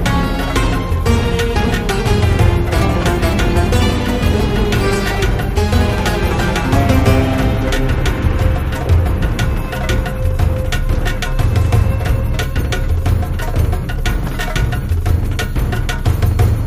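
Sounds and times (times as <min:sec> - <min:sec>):
intense freespin ambience: 0:00.0 - 0:16.6.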